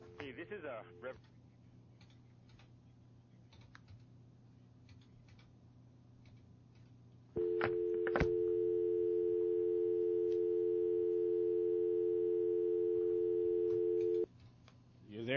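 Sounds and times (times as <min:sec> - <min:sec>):
speech: 0:00.3 - 0:01.4
telephone line tone after radio call-in caller cut off: 0:07.4 - 0:14.3.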